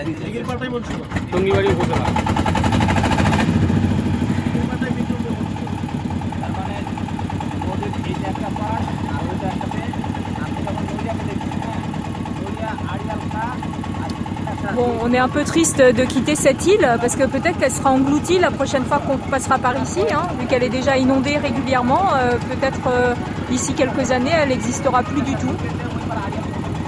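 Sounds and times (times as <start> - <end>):
speech: 0.0 - 3.0, 14.8 - 25.8
boat engine started with removable hand crank: 0.0 - 26.8.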